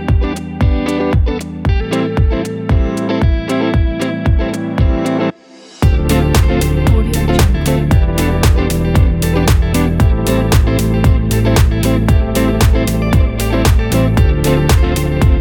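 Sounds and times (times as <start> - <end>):
chill summer dance pop with guitar: 0.0 - 15.4.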